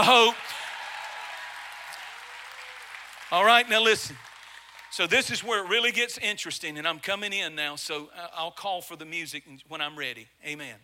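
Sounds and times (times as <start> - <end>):
speech: 0.0 - 0.5, 3.3 - 4.3, 4.9 - 10.8
audience clapping: 0.0 - 5.6.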